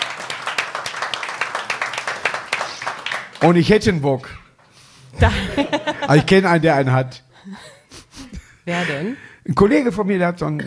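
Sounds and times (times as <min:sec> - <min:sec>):
group clapping: 0:00.0 - 0:04.0
speech: 0:03.4 - 0:04.4, 0:05.2 - 0:07.7, 0:08.7 - 0:10.6
laughter: 0:05.2 - 0:06.6.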